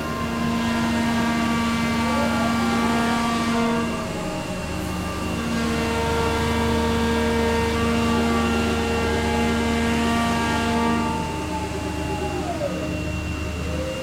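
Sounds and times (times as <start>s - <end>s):
harbour mobile crane machine room noise in Reyðarfjörður: 0.0s - 14.0s.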